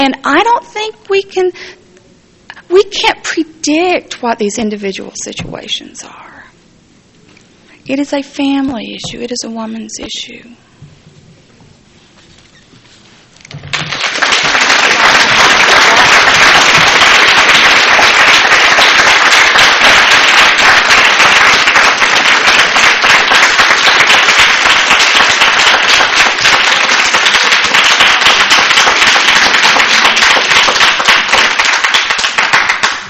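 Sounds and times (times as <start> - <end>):
speech: 0.0 - 1.8, 2.7 - 6.3, 7.9 - 10.7
women clapping aggressively: 13.6 - 33.0.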